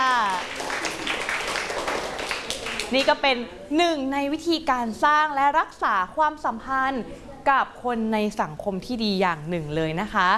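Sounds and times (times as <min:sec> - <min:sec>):
classmates clapping for a student: 0:00.0 - 0:03.2
speech: 0:02.9 - 0:10.3.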